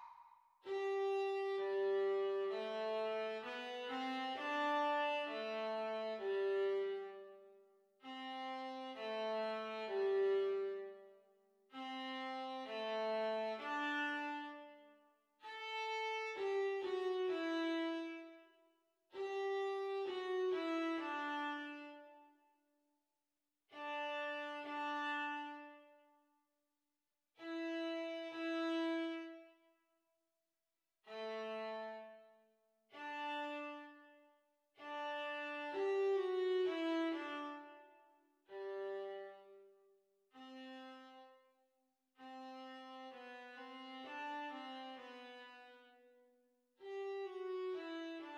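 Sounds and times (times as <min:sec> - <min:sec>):
viola duet at practice speed: 0:00.7 - 0:07.5, 0:08.0 - 0:11.1, 0:11.8 - 0:14.9, 0:15.4 - 0:18.4, 0:19.1 - 0:22.2, 0:23.8 - 0:25.9, 0:27.4 - 0:29.5, 0:32.9 - 0:34.2, 0:34.8 - 0:39.6, 0:42.2 - 0:46.0, 0:46.8 - 0:48.3.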